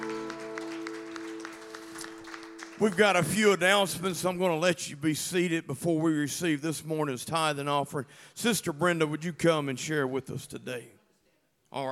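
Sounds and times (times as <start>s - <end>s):
audience clapping hands in praise: 0.0s - 4.2s
speech: 2.8s - 11.0s.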